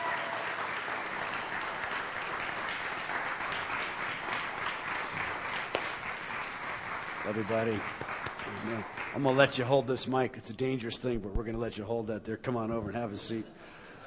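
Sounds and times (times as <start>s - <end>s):
church congregation applause at a morning service: 0.0s - 10.2s
speech: 7.3s - 13.8s.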